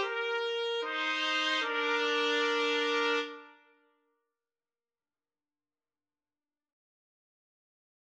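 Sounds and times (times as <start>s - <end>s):
trombone: 0.0s - 3.5s
two trumpets: 0.0s - 3.7s.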